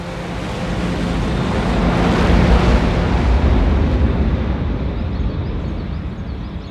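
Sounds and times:
jet aircraft taking off: 0.0 - 6.7.

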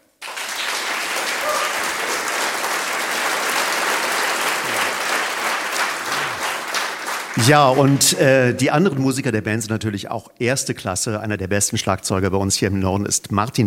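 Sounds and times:
audience applause: 0.1 - 8.5
speech: 7.4 - 13.6.

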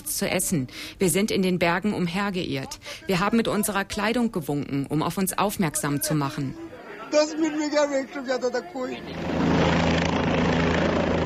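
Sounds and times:
speech: 0.1 - 9.7
rescue helicopter flying: 8.9 - 11.2.

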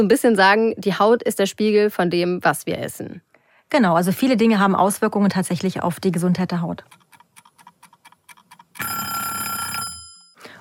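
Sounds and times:
speech: 0.0 - 7.0
unpleasant alarm clock ringing: 8.8 - 10.4.

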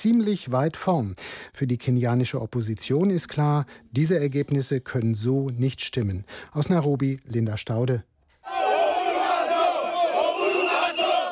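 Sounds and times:
speech: 0.0 - 8.6
angry protesters shouting and chanting: 8.4 - 11.3.

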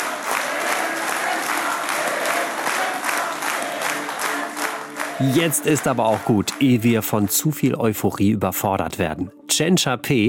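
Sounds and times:
election party supporters clapping and cheering: 0.0 - 8.2
speech: 5.2 - 10.2.

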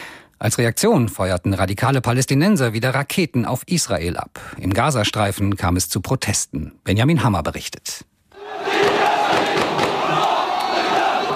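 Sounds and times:
speech: 0.4 - 8.7
crowd chanting and shouting at funeral procession: 8.3 - 11.3.

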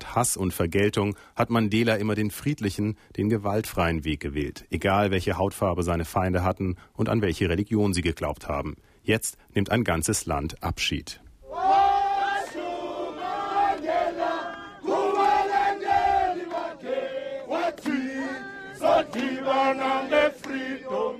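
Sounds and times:
speech: 0.2 - 11.2
large crowd of mourners singing: 11.5 - 21.1.

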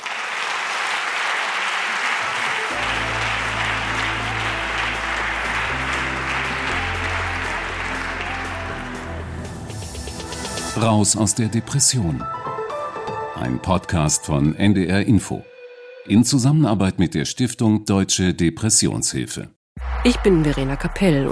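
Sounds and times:
audience applause: 0.0 - 9.6
speech: 10.8 - 12.5, 13.4 - 21.2.

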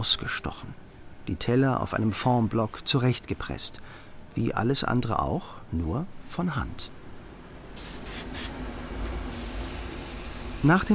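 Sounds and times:
speech: 0.0 - 7.0, 10.6 - 10.9
liquid clay slip being sprayed onto pottery: 7.8 - 8.6, 9.3 - 10.9.

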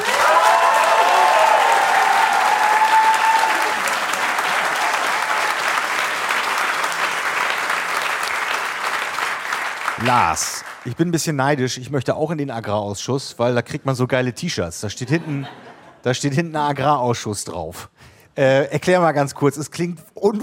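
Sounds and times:
audience applause: 0.0 - 10.9
speech: 10.1 - 20.4
laughter: 15.0 - 16.1.

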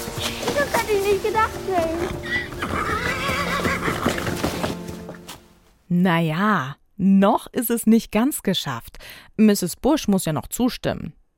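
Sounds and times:
speech: 1.1 - 2.4, 5.9 - 11.2
old worn-out horse whinnying: 2.0 - 4.8.

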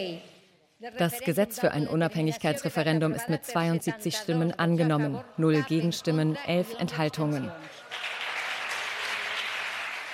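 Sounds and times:
speech: 0.0 - 8.1
applause from governing parties in a parliament chamber after a vote: 7.1 - 10.1.

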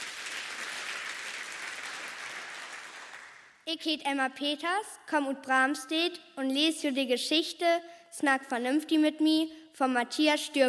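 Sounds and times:
audience applause: 0.0 - 3.5
speech: 3.7 - 10.6.

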